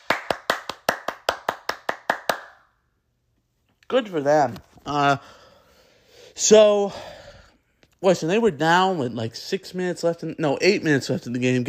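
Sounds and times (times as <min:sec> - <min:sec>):
round of applause: 0:00.0 - 0:02.6
speech: 0:03.9 - 0:05.4, 0:06.3 - 0:07.2, 0:08.0 - 0:11.6.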